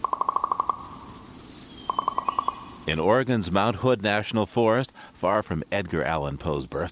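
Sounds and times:
common raven call in Oregon's Mount Hood National Forest: 0.0 - 3.2
speech: 2.9 - 6.9.

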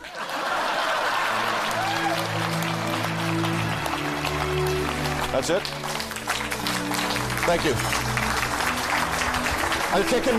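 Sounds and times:
laughter: 0.0 - 2.4
crowd applause: 0.0 - 10.3
speech: 5.3 - 5.9, 7.5 - 8.1, 9.9 - 10.3.

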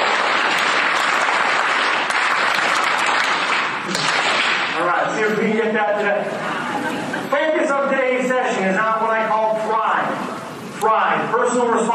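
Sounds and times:
audience doing one loud unison power clap: 0.0 - 5.0
speech: 5.4 - 6.5, 7.3 - 10.2, 10.8 - 11.9.

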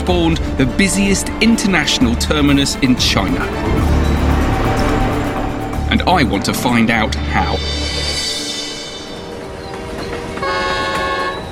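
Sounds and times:
X8308 international train arriving from Nuremberg: 0.0 - 11.5
speech: 0.1 - 3.8, 5.9 - 7.8
international train horn sounding: 3.4 - 6.6, 10.3 - 11.5.

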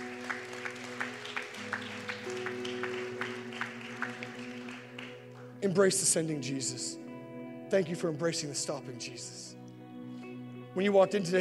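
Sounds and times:
audience applause: 0.0 - 5.5
speech: 5.6 - 7.0, 7.7 - 9.6, 10.8 - 11.4.

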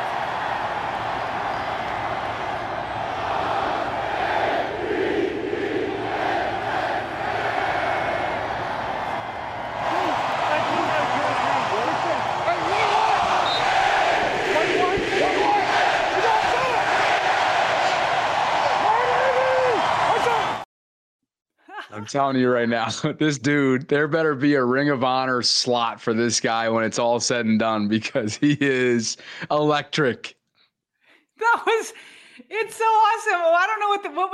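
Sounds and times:
large stadium crowd roaring and chanting: 0.0 - 20.6
speech: 22.1 - 30.4, 32.8 - 34.3.

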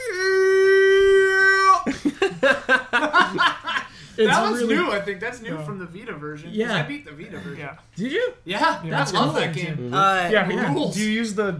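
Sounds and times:
voice imitating a scary scarecrow scream: 0.0 - 1.8
laughter: 1.8 - 4.9
rapid talking: 3.3 - 11.5
speech: 4.2 - 11.5.

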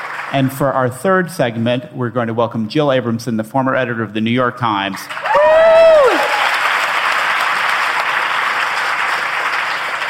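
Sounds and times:
audience applause: 0.0 - 0.6, 5.1 - 10.0
speech: 0.3 - 5.4
high whoop sliding downward: 5.2 - 6.6.

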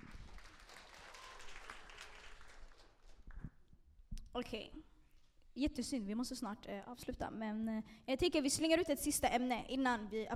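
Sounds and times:
audience applause: 0.0 - 3.4
speech: 4.4 - 4.9, 5.6 - 10.3.

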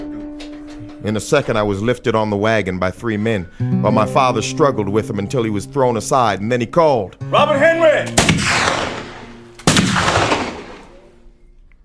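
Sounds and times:
speech: 1.0 - 8.5
gunfire around a wagon: 8.1 - 11.1.

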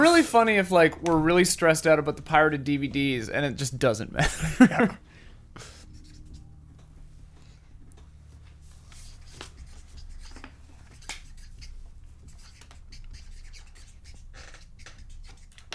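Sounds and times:
low hum: 0.0 - 15.7
speech: 0.1 - 5.7
laughter: 4.2 - 5.0
pen writing on paper during a game session: 9.1 - 15.7.

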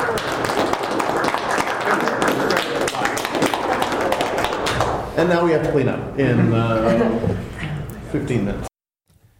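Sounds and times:
hand clapping: 0.0 - 5.0
speech: 5.2 - 8.7.

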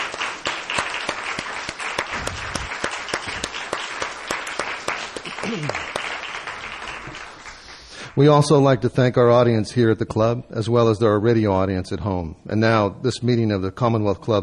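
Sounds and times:
audience applause: 0.0 - 8.1
speech: 8.2 - 14.4.

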